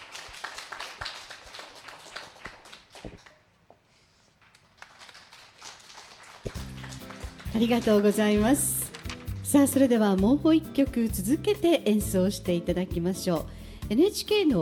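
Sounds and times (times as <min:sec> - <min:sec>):
audience applause: 0:00.0 - 0:03.4, 0:04.7 - 0:09.4
speech: 0:03.0 - 0:03.3, 0:07.6 - 0:08.8, 0:09.5 - 0:14.5.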